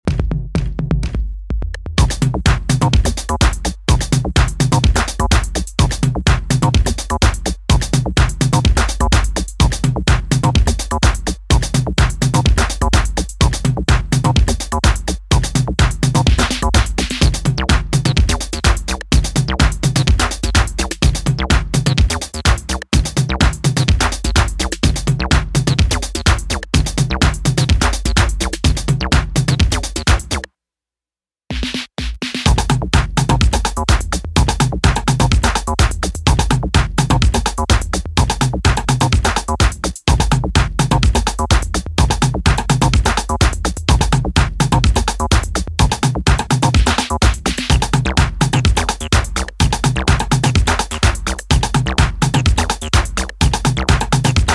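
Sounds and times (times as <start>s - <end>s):
instrumental music: 0.1s - 30.5s, 31.5s - 54.5s.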